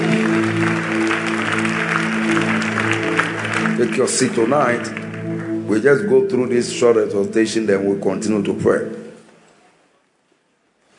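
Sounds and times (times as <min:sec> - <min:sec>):
audience clapping hands: 0:00.0 - 0:05.7
speech: 0:03.8 - 0:05.1, 0:05.7 - 0:09.0.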